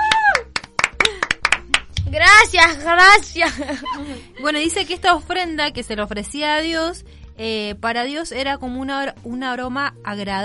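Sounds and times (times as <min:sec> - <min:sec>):
clapping: 0:00.0 - 0:02.1
speech: 0:02.6 - 0:10.4
laughter: 0:03.4 - 0:04.6.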